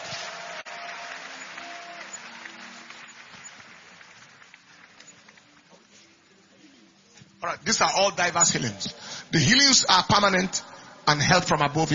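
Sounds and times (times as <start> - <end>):
audience clapping hands: 0.0 - 6.1
speech: 7.4 - 11.9.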